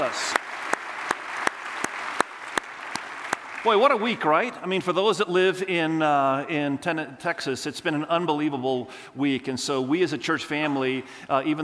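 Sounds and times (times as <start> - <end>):
speech: 0.0 - 0.4, 3.6 - 11.6
sharp claps: 0.0 - 4.1
church congregation applauding to welcome one another: 0.0 - 4.7.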